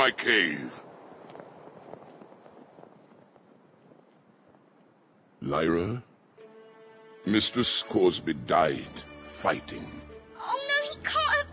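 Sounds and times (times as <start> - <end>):
speech: 0.0 - 0.9, 5.4 - 6.1, 7.2 - 11.5
heavy crunching footsteps of an approaching polar bear: 0.8 - 4.9.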